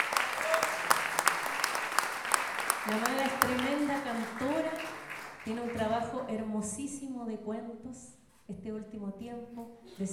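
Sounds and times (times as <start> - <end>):
audience applause for a guest at a poetry collection launch: 0.0 - 6.1
speech: 2.8 - 4.6, 5.4 - 10.1.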